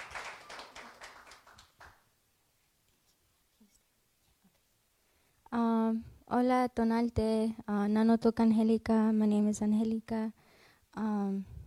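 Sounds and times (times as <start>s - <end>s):
audience applause: 0.0s - 2.0s
speech: 6.3s - 10.4s, 11.0s - 11.5s.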